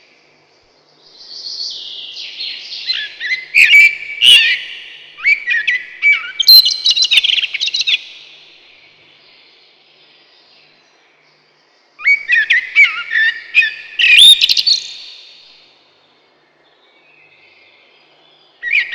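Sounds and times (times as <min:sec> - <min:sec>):
common blackbird singing mellow fluted whistled phrases: 0:01.6 - 0:08.3, 0:12.0 - 0:15.5, 0:18.6 - 0:18.9.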